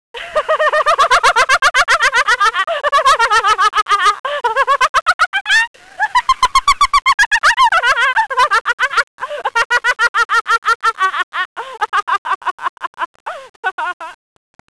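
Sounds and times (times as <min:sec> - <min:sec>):
person laughing: 0:00.2 - 0:14.2.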